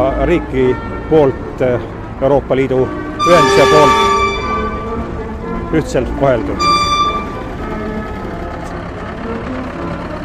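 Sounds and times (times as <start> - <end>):
heavy engine rumble: 0.0 - 10.2
traffic noise: 0.0 - 10.2
speech: 0.2 - 4.1, 5.7 - 6.8
tractor horn signal: 2.8 - 5.4, 6.3 - 8.5.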